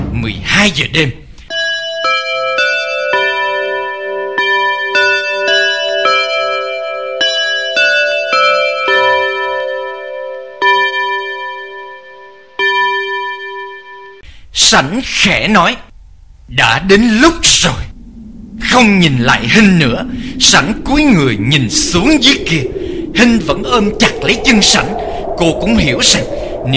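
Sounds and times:
speech: 0:00.2 - 0:01.2, 0:14.7 - 0:15.8, 0:16.5 - 0:17.9, 0:18.6 - 0:26.7
alarm clock bell chiming midnight: 0:01.5 - 0:14.2.

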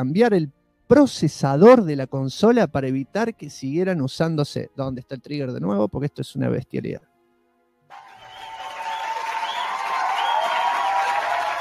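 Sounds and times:
speech: 0:00.0 - 0:07.1
crowd applause with cheering: 0:07.9 - 0:11.5.

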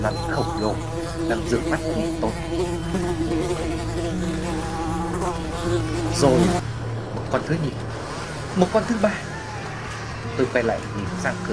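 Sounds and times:
flies buzzing: 0:00.0 - 0:06.6
speech: 0:00.0 - 0:06.6, 0:07.3 - 0:09.3, 0:10.3 - 0:11.5.

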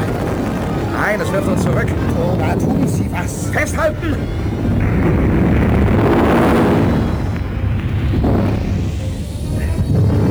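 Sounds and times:
bombs exploding in a giant fireball: 0:00.0 - 0:10.2
laughter: 0:00.0 - 0:10.2
speech: 0:01.1 - 0:05.2.

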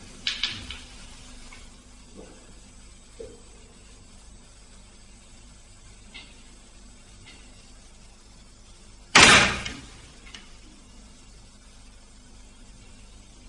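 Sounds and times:
quiet hiss: 0:00.0 - 0:13.4
door moving by itself and slamming shut: 0:09.2 - 0:09.9.

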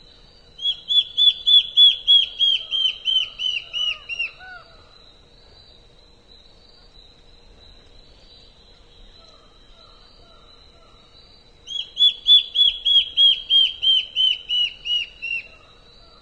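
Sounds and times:
Black-faced antbird myotherinus singing down-slurred whistled notes: 0:00.0 - 0:04.8, 0:08.3 - 0:16.2.

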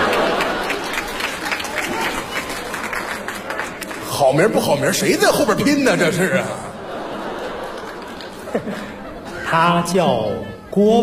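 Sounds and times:
laughter: 0:00.0 - 0:02.6, 0:04.5 - 0:10.6
studio audience applause on a Beijing arts radio programme: 0:00.0 - 0:06.0, 0:06.9 - 0:09.2
speech: 0:04.3 - 0:06.6, 0:09.5 - 0:11.0.

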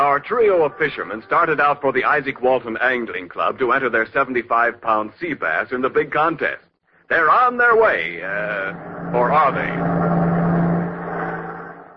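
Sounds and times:
speech: 0:00.2 - 0:10.0
bus driving past: 0:07.8 - 0:11.9.

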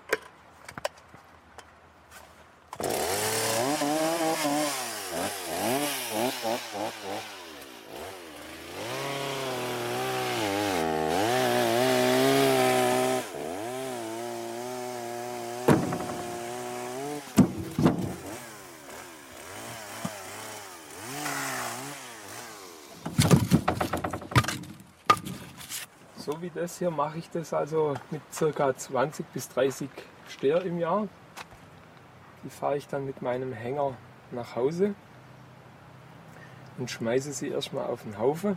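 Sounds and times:
cold chainsaw engine starting and warming up: 0:02.8 - 0:24.2
speech: 0:26.4 - 0:31.2, 0:32.4 - 0:35.1, 0:36.8 - 0:38.5.

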